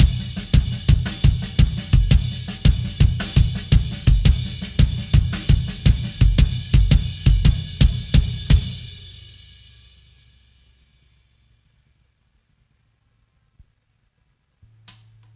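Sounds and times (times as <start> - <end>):
drums: 0.0 - 11.8.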